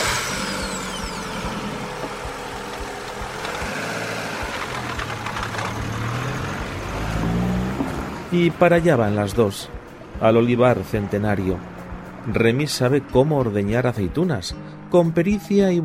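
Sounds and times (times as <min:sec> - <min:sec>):
car engine running with rough rumble: 0:00.0 - 0:08.9
speech: 0:08.3 - 0:15.8.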